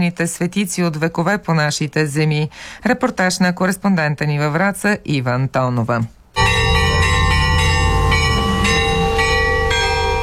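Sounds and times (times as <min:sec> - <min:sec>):
speech: 0:00.0 - 0:06.2
festive church bells pealing: 0:06.4 - 0:10.2.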